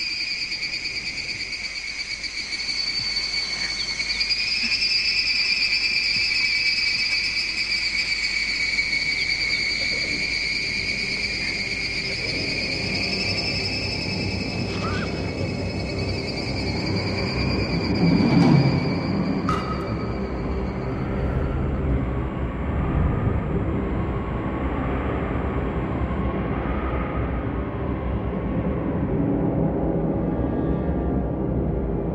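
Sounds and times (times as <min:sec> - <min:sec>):
processed strident and aggressive cicadas: 0:00.0 - 0:31.5
low rumble: 0:11.9 - 0:32.1.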